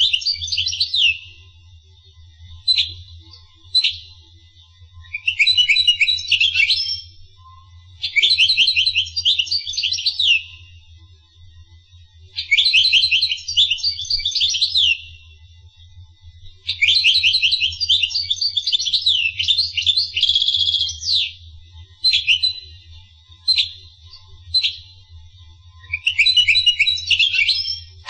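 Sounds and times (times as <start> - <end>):
finch song: 0.0 - 1.5, 2.6 - 4.3, 5.0 - 7.2, 8.0 - 10.7, 12.4 - 15.4, 16.7 - 28.0.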